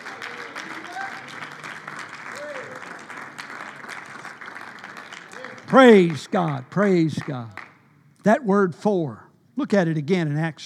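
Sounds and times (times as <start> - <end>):
people clapping hands: 0.0 - 7.9
speech: 5.7 - 7.6, 8.2 - 10.6.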